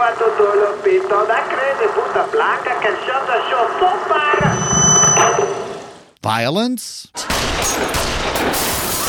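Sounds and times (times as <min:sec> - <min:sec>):
speech: 0:00.1 - 0:04.8, 0:06.3 - 0:08.8
rapid gunshots: 0:07.3 - 0:09.0.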